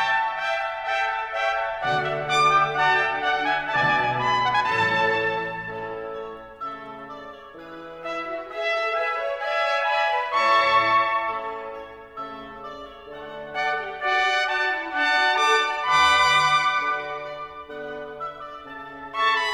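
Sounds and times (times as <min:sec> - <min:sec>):
baroque trumpets playing: 0:00.0 - 0:19.5.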